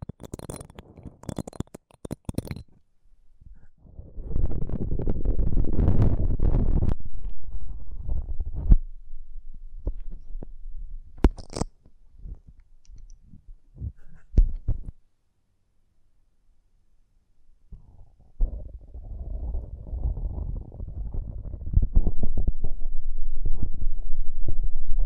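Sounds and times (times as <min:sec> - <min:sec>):
sharp crackles and clicks: 0:00.0 - 0:02.9, 0:04.2 - 0:08.9, 0:11.2 - 0:13.2, 0:18.9 - 0:25.0
low muffled rubbing rumble: 0:03.5 - 0:11.2, 0:18.0 - 0:25.0.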